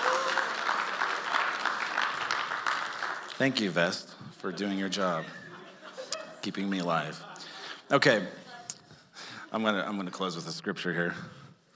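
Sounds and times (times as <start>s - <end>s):
applause for a hiking vest: 0.0s - 4.0s
speech: 3.4s - 5.4s, 6.4s - 7.3s, 7.9s - 8.4s, 9.5s - 11.4s
laughter: 4.6s - 7.8s.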